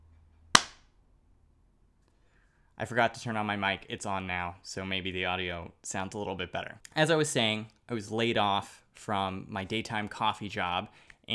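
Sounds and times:
hand clap: 0.6 - 0.8
speech: 2.8 - 11.3.

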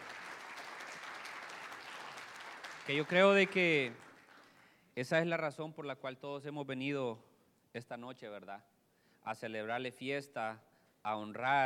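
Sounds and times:
audience applause: 0.0 - 4.6
speech: 2.9 - 4.0, 5.0 - 11.6.

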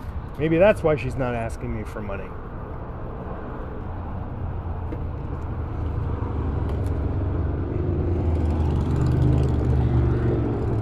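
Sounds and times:
motor vehicles passing on street: 0.0 - 10.8
speech: 0.4 - 2.5
vehicle revving and passing: 5.6 - 10.8.

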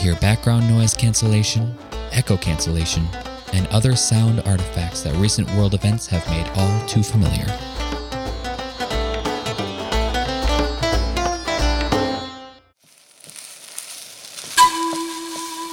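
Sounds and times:
speech: 0.0 - 8.0
rhythmic melodic music: 0.0 - 12.6
food frying: 12.8 - 15.7.

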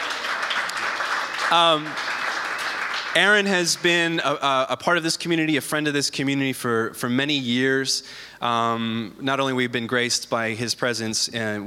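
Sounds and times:
audience applause: 0.0 - 3.7
speech: 1.5 - 2.1, 3.1 - 11.6.

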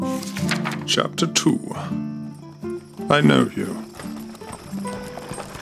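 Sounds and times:
horse-drawn wagon creaking past through town gates: 0.1 - 5.6
speech: 0.9 - 2.0, 3.1 - 3.9.

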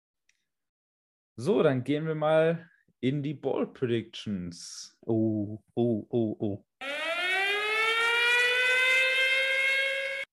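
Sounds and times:
speech: 1.4 - 6.9
alarm siren wailing: 6.8 - 10.3.

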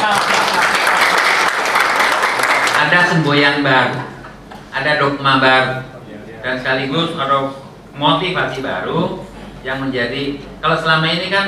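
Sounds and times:
audience applause: 0.0 - 3.2
speech: 2.8 - 4.2, 4.8 - 11.4.

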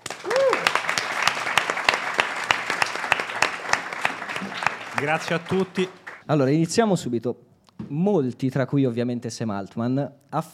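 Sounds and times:
audience applause: 0.0 - 6.2
whoop or cheer: 0.2 - 0.9
speech: 4.4 - 10.5.

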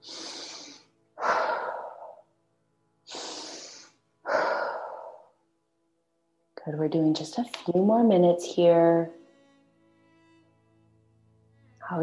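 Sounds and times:
slow guided meditation breathing in through the nose and out through the mouth: 0.0 - 2.4, 3.1 - 5.4
speech: 6.6 - 9.2.

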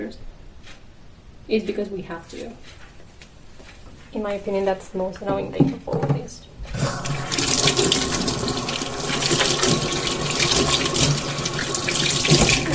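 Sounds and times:
speech: 0.0 - 0.3, 1.5 - 2.8, 4.1 - 6.8, 12.2 - 12.7
water tap running into a sink while washing hands: 7.0 - 12.7.

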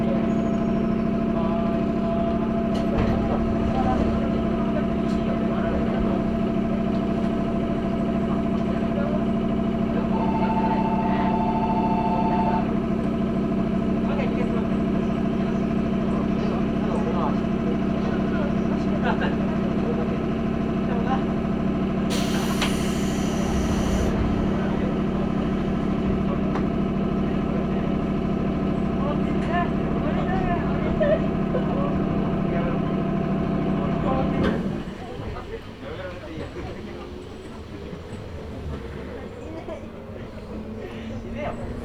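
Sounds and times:
Chuo East Line local train humming drone: 0.0 - 17.9, 20.0 - 41.8
faint voices: 0.0 - 41.8
quieter train rumble: 1.3 - 9.1, 22.1 - 41.8
brief hiss burst: 22.1 - 24.2.

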